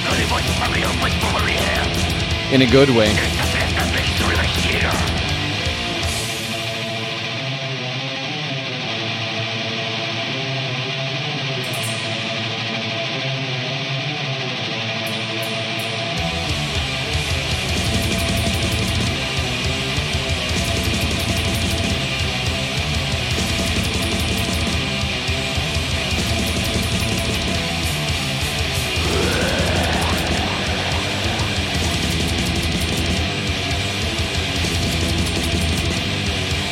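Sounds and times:
effects-laden 80s-style electric guitar: 0.0 - 36.7
rock full-band backing: 0.0 - 36.7
speech: 2.5 - 3.4.

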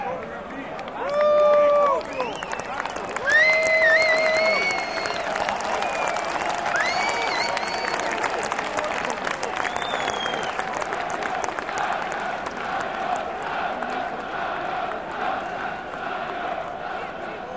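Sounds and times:
scattered clapping: 0.1 - 17.5
crowd roar at a football match: 1.0 - 17.5
loud sustained shouts or whistles: 1.5 - 8.3, 9.6 - 10.6
football fans chanting at a match: 10.2 - 17.5.

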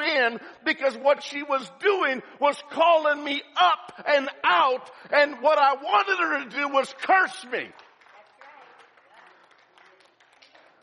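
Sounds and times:
speech: 0.2 - 7.9
audience applauding: 7.7 - 10.8.

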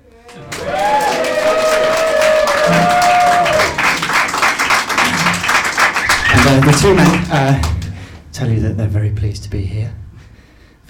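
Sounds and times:
crowd applauding: 0.0 - 8.1
crowd cheering and whooping: 0.2 - 7.1
speech: 6.8 - 7.7, 8.4 - 10.0.

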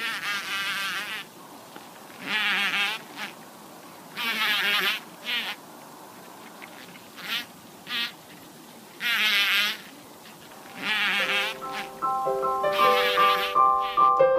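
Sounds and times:
bumblebee vibrating its body to release pollen: 0.0 - 1.4, 2.1 - 3.4, 4.1 - 5.7, 6.4 - 8.3, 9.0 - 14.2.

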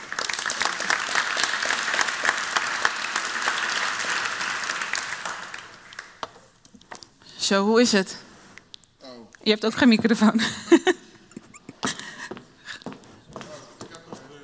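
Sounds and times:
audience applause: 0.0 - 6.2
speech: 7.5 - 8.2, 9.5 - 11.0
laughter: 10.4 - 12.3.

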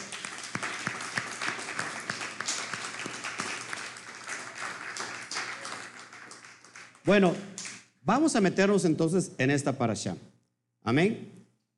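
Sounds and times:
audience applause: 0.0 - 7.1
speech: 7.1 - 11.4.

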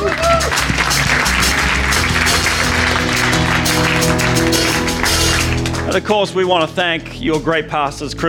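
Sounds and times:
audience clapping: 0.0 - 6.3
speech: 6.0 - 8.2.

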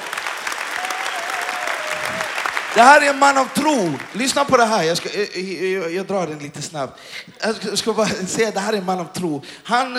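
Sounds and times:
audience applause: 0.0 - 5.1
speech: 2.8 - 9.9
laughter: 6.7 - 9.1.

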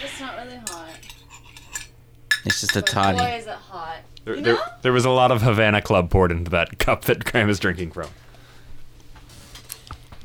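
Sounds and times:
speech: 0.2 - 1.4, 2.4 - 8.2
metal clinking against a glass as a drink is stirred: 0.6 - 3.4.

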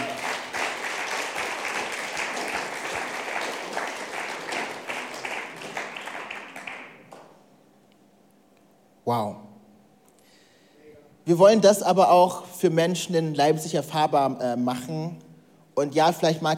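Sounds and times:
crowd applause: 0.0 - 7.3
speech: 9.1 - 9.4, 11.3 - 15.2, 15.8 - 16.5.

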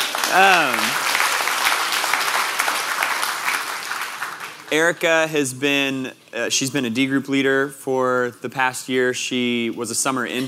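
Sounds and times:
audience applause: 0.0 - 4.9
speech: 0.3 - 1.0, 4.7 - 10.4.

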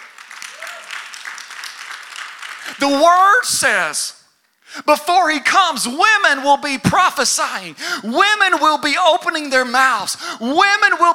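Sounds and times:
audience applause: 0.0 - 3.4
speech: 2.7 - 11.1.

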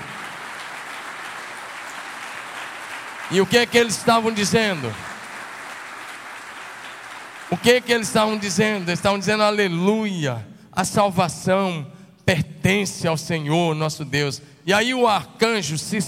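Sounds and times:
audience applause: 0.0 - 9.3
speech: 3.3 - 5.1, 7.5 - 16.0.

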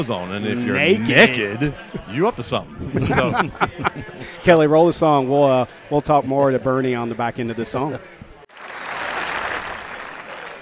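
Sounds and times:
speech: 0.0 - 8.2
laughter: 2.6 - 4.5
audience applause: 8.5 - 10.5.

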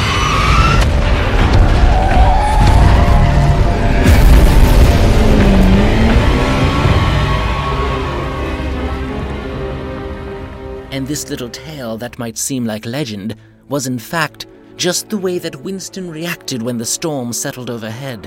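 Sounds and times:
car skidding around craters: 0.0 - 10.8
German incendiary Flammenbomben erupting: 0.6 - 7.6
speech: 11.1 - 18.2.

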